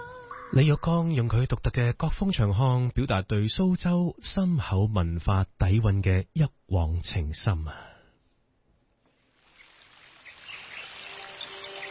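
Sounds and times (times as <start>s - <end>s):
speech: 0.5s - 7.9s
flowing water in a song: 9.2s - 11.8s
rain in a song: 9.2s - 11.8s.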